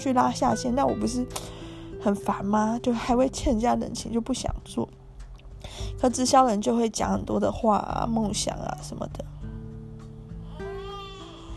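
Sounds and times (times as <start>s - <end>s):
speech: 0.0s - 5.0s, 5.6s - 9.4s
baby boy crying: 10.4s - 11.5s.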